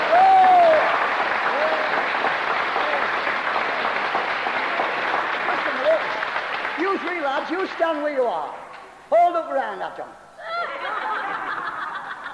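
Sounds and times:
audience applause: 0.0s - 8.1s
speech: 7.9s - 8.7s, 9.4s - 10.2s
laughter: 10.4s - 12.3s.

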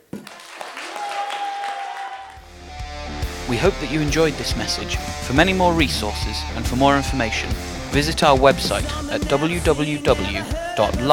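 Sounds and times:
crowd clapping: 0.0s - 2.5s
voices shouting and cheering: 0.4s - 2.4s, 3.5s - 11.1s
speech: 3.5s - 11.1s.

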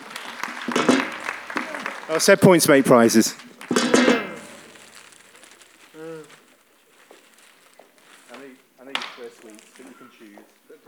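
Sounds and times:
audience applause: 0.0s - 4.8s
speech: 2.1s - 3.5s.

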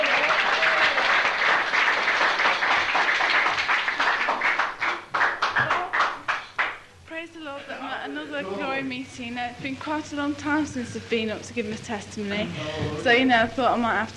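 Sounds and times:
audience applause: 0.0s - 6.9s
speech: 9.1s - 14.1s.

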